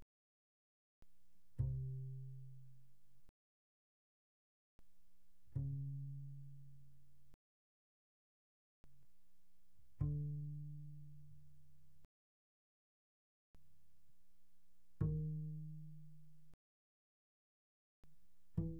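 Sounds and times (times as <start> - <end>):
double bass pizzicato pianissimo on the D string C3 to B3: 1.5 - 3.0, 5.4 - 7.4, 9.9 - 12.0, 14.9 - 16.6, 18.2 - 18.7.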